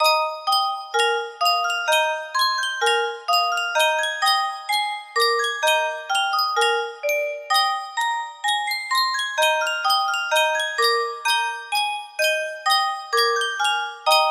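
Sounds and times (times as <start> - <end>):
music box melody: 0.0 - 14.2.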